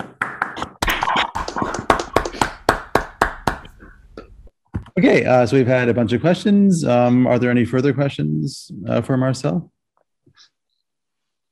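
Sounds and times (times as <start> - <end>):
applause: 1.4 - 3.6
speech: 5.0 - 9.7.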